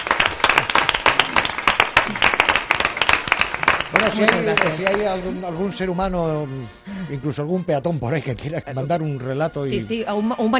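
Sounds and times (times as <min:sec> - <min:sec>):
loud audience applause: 0:00.0 - 0:05.2
speech: 0:04.0 - 0:10.5.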